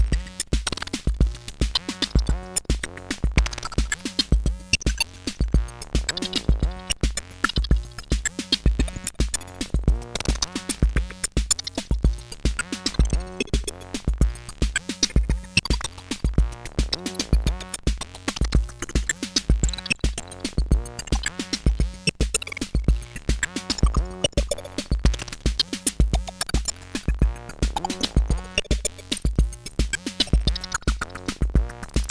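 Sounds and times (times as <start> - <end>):
modded drum machine bass drum: 0.0 - 32.1.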